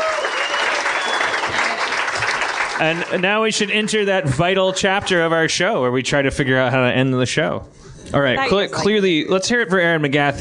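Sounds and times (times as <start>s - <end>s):
audience applause: 0.0s - 3.8s
speech: 2.8s - 10.3s.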